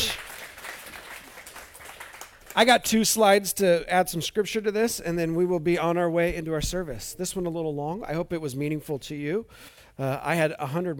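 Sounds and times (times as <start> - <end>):
audience applause: 0.0 - 2.7
speech: 2.6 - 10.9.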